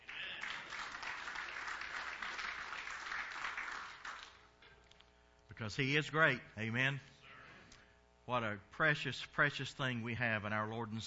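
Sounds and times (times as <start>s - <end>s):
audience hand clapping: 0.0s - 4.5s
speech: 5.6s - 7.1s, 8.3s - 11.0s.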